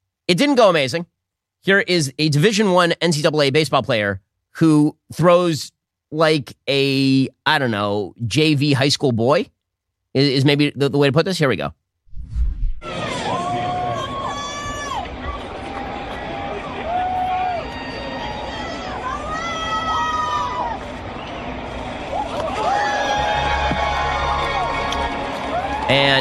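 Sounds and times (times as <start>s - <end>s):
speech: 0.3s - 12.5s, 25.9s - 26.1s
baseball stadium crowd cheering: 12.8s - 26.1s.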